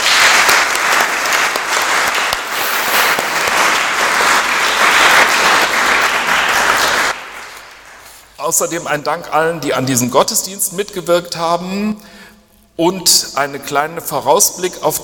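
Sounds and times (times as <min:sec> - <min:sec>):
audience applause: 0:00.0 - 0:08.1
speech: 0:08.5 - 0:12.2, 0:12.8 - 0:15.0.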